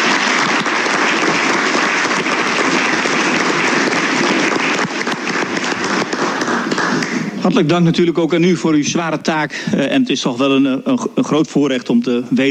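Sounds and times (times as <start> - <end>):
applause in council chamber: 0.0 - 7.5
speech: 7.4 - 12.4.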